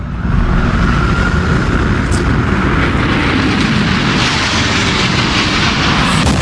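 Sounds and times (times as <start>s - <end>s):
airliner crashing into a World Trade Center tower during the September 11 attacks: 0.0s - 6.4s.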